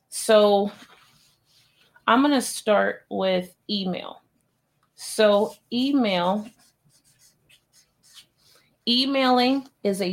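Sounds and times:
speech: 0.2 - 0.9, 2.1 - 4.2, 5.0 - 6.6, 8.8 - 10.1
writing on a board: 5.4 - 8.4.

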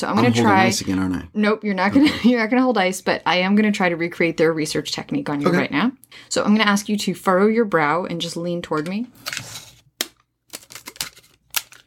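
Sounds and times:
speech: 0.0 - 9.6
tape pulled from a roll: 9.2 - 11.8.

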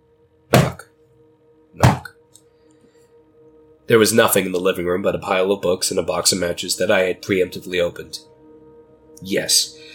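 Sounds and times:
dull knocks: 1.8 - 2.1
speech: 3.9 - 8.3, 9.2 - 9.9.

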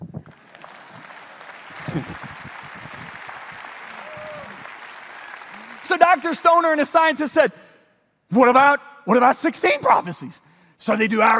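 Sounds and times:
crowd applause: 0.0 - 7.2
speech: 1.9 - 2.4, 5.9 - 7.6, 8.3 - 11.3.

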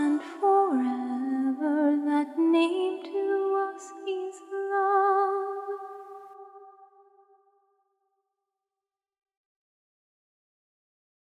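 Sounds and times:
a cappella psalm hymn singing: 0.0 - 7.0.

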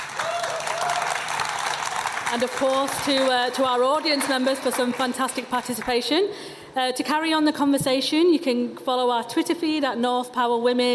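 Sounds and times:
audience applause: 0.0 - 5.9
speech: 2.3 - 10.9.

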